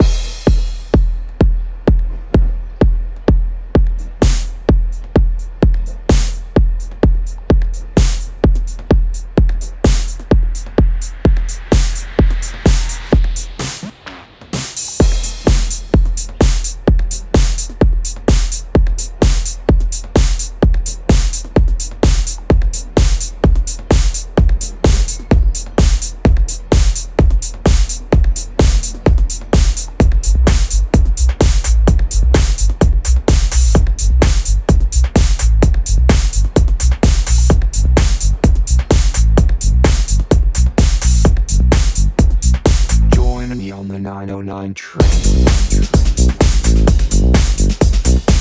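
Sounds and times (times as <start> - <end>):
909 drum machine train beat: 0.0 - 43.9, 45.0 - 48.3.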